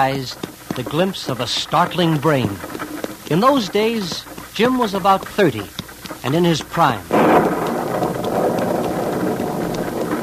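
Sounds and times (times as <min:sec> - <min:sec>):
speech: 0:00.0 - 0:07.2
faint low rumble of thunder: 0:07.1 - 0:10.2
heavy storm rain pouring: 0:07.1 - 0:10.2.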